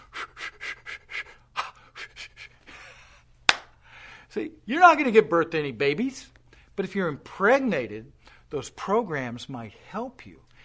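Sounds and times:
person imitating hard rhythmic panting taught in prepared childbirth classes: 0:00.0 - 0:04.3
speech: 0:04.4 - 0:10.5.

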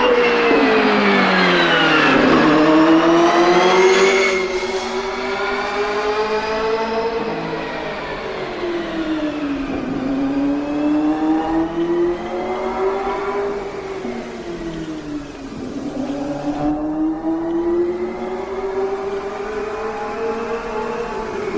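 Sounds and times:
turbocharged V8 IndyCar engines at Phoenix International Raceway oval: 0:00.0 - 0:21.5.

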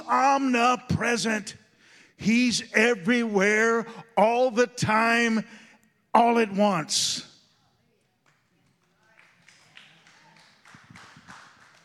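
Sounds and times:
speech: 0:00.1 - 0:01.6, 0:02.2 - 0:07.3
weak scattered hand clapping: 0:08.2 - 0:11.8.

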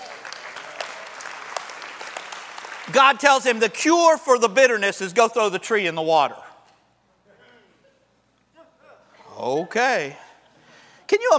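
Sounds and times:
audience applause: 0:00.0 - 0:03.6
speech: 0:02.9 - 0:06.4, 0:09.4 - 0:10.2, 0:11.1 - 0:11.3.

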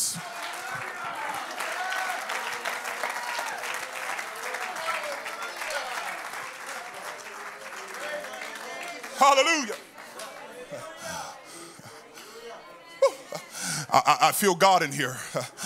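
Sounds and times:
audience clapping hands: 0:00.0 - 0:11.3
speech: 0:00.1 - 0:00.4, 0:09.2 - 0:09.9, 0:13.9 - 0:15.6
laughter: 0:07.8 - 0:15.6.

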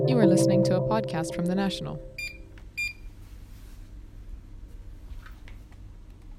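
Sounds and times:
speech: 0:00.2 - 0:02.2
blood pressure machine beep at a health center in Abu Dhabi: 0:02.2 - 0:03.1.

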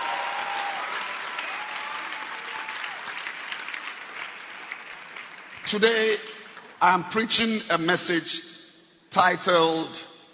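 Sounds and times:
faint cheering: 0:00.0 - 0:03.2
audience clapping hands: 0:00.0 - 0:06.8
speech: 0:05.7 - 0:08.5, 0:09.1 - 0:10.1.

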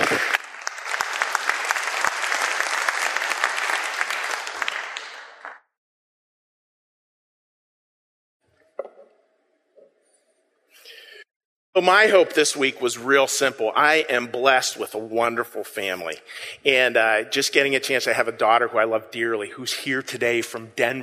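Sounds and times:
audience round of applause: 0:00.0 - 0:05.6
speech: 0:11.8 - 0:21.0.

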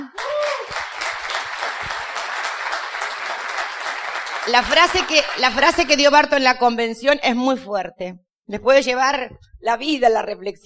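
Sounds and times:
sizable audience applauding: 0:00.0 - 0:06.2
speech: 0:04.5 - 0:10.6.

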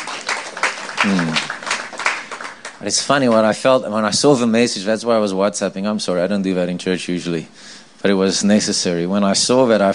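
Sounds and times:
audience clapping: 0:00.0 - 0:03.6
speech: 0:01.0 - 0:01.5, 0:02.8 - 0:09.9.

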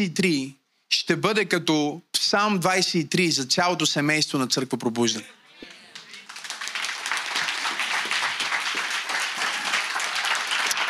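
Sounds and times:
speech: 0:00.0 - 0:05.4
church audience applause: 0:05.7 - 0:10.8.

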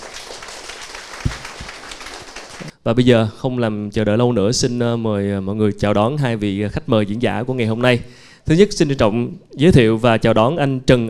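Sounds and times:
audience applause: 0:00.0 - 0:02.7
speech: 0:02.8 - 0:11.0.

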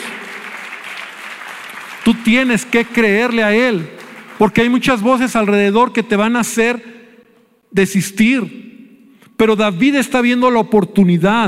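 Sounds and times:
audience applause: 0:00.0 - 0:04.8
speech: 0:02.1 - 0:06.9, 0:07.7 - 0:08.6, 0:09.4 - 0:11.4.

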